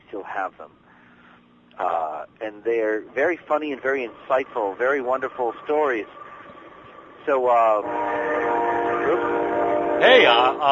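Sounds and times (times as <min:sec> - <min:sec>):
speech: 0:00.2 - 0:00.9, 0:01.8 - 0:06.2, 0:07.2 - 0:08.4, 0:10.0 - 0:10.7
freight train horn blast: 0:03.8 - 0:10.7.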